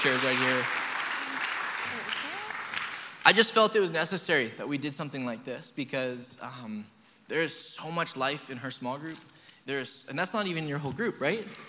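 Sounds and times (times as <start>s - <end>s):
speech: 0.0s - 0.8s, 3.3s - 11.6s
crowd applause: 0.0s - 3.6s.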